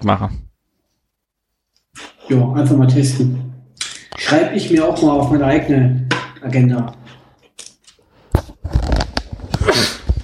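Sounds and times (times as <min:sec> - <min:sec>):
speech: 0:00.0 - 0:00.5, 0:02.3 - 0:03.5, 0:04.2 - 0:07.0
person sneezing: 0:09.6 - 0:10.1.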